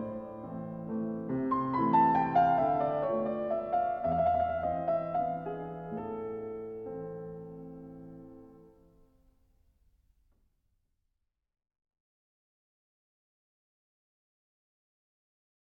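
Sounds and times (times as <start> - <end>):
waltz in A minor: 0.0 - 8.7.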